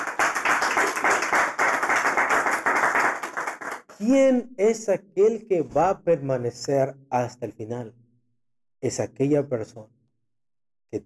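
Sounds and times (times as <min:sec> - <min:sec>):
audience clapping hands: 0:00.0 - 0:03.9
speech: 0:04.0 - 0:08.0, 0:08.8 - 0:10.0.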